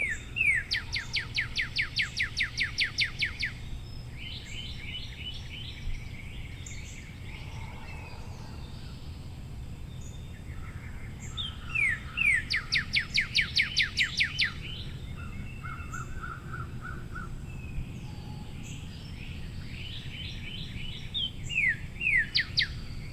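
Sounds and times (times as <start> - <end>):
cardinal song of slurred and falling whistled notes: 0.0 - 6.1, 10.0 - 16.2, 17.6 - 23.1.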